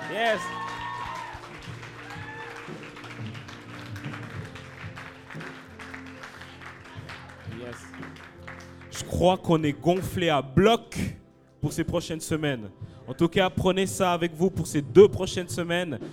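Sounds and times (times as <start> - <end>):
audience applauding: 0.0 - 9.4
speech: 0.1 - 0.8, 9.1 - 16.1.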